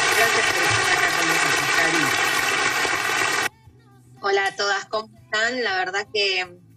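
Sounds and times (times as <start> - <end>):
audience applause: 0.0 - 3.5
speech: 4.9 - 6.6.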